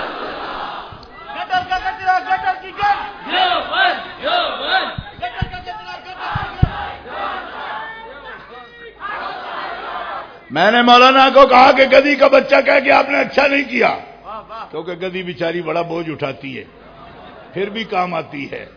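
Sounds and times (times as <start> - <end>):
crowd shouting the response to a religious slogan call: 0.1 - 8.4, 9.0 - 10.4
speech: 10.6 - 14.1, 14.7 - 16.8, 17.5 - 18.7.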